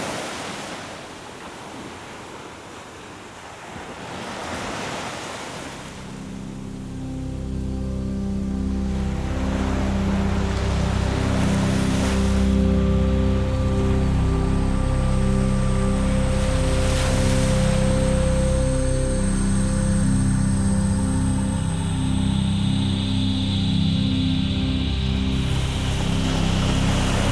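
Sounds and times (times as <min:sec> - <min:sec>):
ocean waves: 0:00.0 - 0:27.2
relaxing music: 0:05.8 - 0:27.2.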